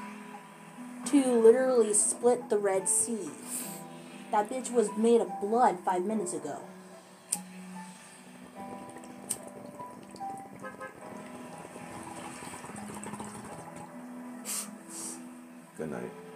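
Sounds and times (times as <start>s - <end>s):
speech: 1.1s - 3.7s, 4.3s - 6.8s
bong being hit: 8.6s - 14.0s.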